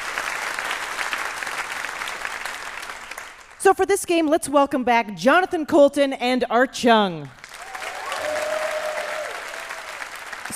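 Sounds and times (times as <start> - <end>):
audience applause: 0.0 - 3.6, 7.4 - 10.5
speech: 3.6 - 7.4.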